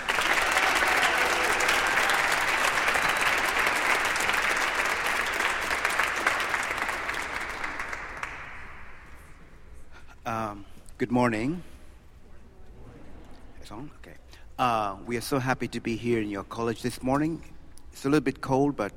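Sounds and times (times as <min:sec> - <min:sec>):
audience applause welcoming a band: 0:00.0 - 0:09.1
speech: 0:11.1 - 0:11.7, 0:13.8 - 0:18.9.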